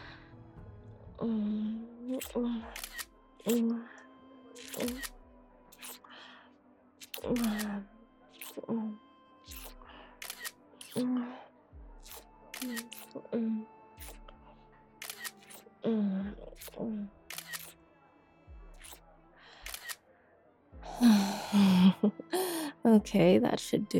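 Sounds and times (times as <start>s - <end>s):
speech: 1.2s - 1.5s, 2.2s - 4.0s, 4.6s - 5.2s, 7.2s - 7.9s, 8.6s - 9.0s, 11.0s - 11.4s, 12.6s - 13.8s, 15.8s - 17.2s, 22.0s - 23.9s
camera shutter clicks taking a selfie: 2.2s - 3.6s, 4.6s - 5.1s, 7.0s - 7.7s, 9.5s - 11.0s, 12.0s - 13.2s, 15.0s - 15.6s, 16.6s - 17.8s, 19.6s - 20.0s.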